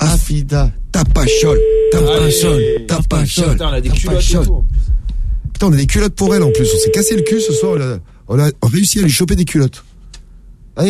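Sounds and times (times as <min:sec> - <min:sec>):
speech: 0:00.1 - 0:04.9, 0:05.6 - 0:09.9
ringback tone of an outgoing phone call: 0:01.3 - 0:02.9, 0:06.3 - 0:07.8.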